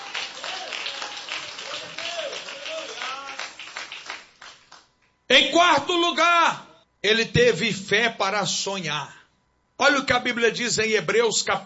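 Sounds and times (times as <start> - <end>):
audience applauding: 0.0 - 4.9
speech: 5.3 - 9.2, 9.8 - 11.6.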